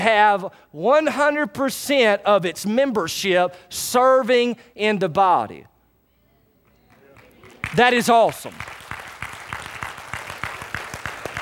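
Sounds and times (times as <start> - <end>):
speech: 0.0 - 5.7, 7.7 - 8.8
audience clapping: 6.7 - 11.4.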